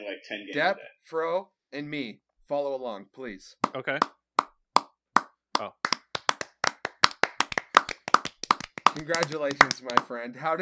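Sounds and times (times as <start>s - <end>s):
speech: 0.2s - 4.2s, 5.6s - 5.8s, 8.9s - 10.6s
hands clapping: 3.6s - 10.2s.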